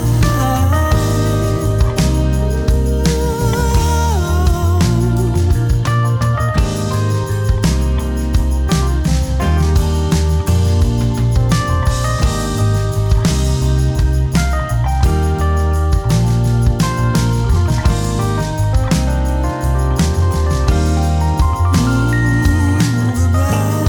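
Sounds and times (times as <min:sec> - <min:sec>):
Rhodes electric piano: 0:00.0 - 0:23.8.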